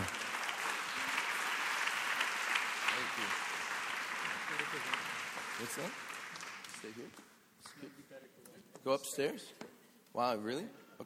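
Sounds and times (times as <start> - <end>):
audience applause: 0.0 - 7.2
speech: 5.6 - 6.1, 6.8 - 11.0.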